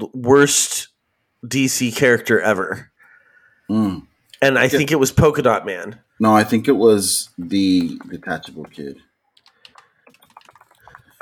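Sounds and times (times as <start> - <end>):
speech: 0.2 - 2.9, 3.7 - 9.1
computer keyboard typing: 7.8 - 11.2.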